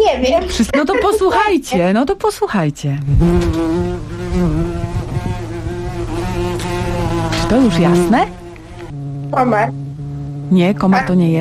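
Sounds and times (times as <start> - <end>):
speech: 0.2 - 4.7, 7.5 - 8.4, 9.3 - 9.8, 10.5 - 11.3
wasp buzzing in flight: 3.0 - 11.3.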